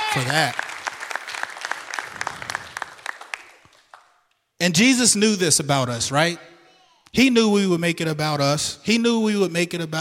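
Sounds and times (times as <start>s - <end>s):
audience clapping: 0.0s - 4.4s
speech: 0.2s - 0.6s, 4.6s - 6.5s, 7.1s - 10.0s.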